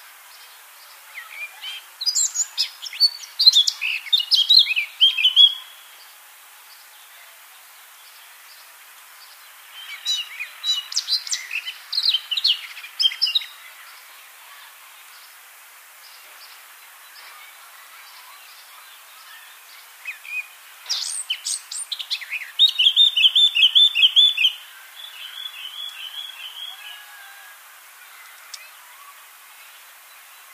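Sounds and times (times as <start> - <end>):
Eurasian blackcap warbling song: 0.3 - 6.0, 9.6 - 14.1, 16.0 - 27.1.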